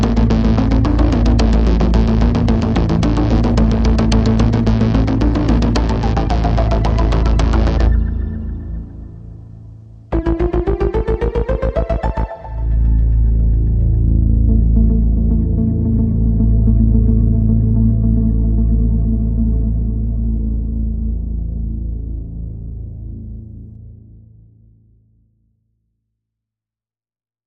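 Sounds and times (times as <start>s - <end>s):
pulses: 0.0s - 9.3s, 10.1s - 16.6s
synth pads: 0.0s - 23.8s.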